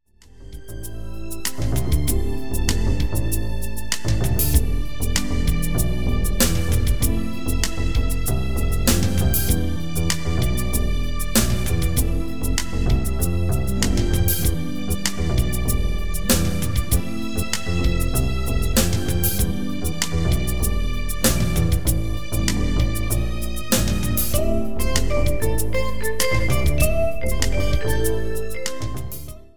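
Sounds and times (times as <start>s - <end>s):
cool jazz: 0.7s - 29.4s.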